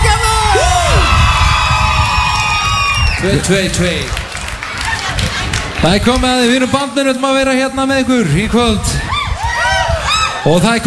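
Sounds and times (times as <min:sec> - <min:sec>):
concert crowd whoops: 0:00.1 - 0:03.4, 0:09.0 - 0:10.5
evening concert crowd clapping in Hljómskálagarður park, Reykjavík: 0:01.5 - 0:06.8
speech: 0:03.2 - 0:04.2, 0:05.8 - 0:09.1, 0:10.4 - 0:10.8.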